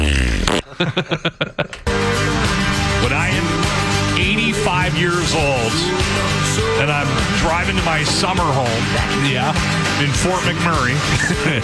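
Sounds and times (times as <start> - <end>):
Tesla car fart sound effect: 0.0 - 0.8
laughter: 0.6 - 3.4, 10.8 - 11.6
speech: 0.8 - 1.8, 4.6 - 11.6.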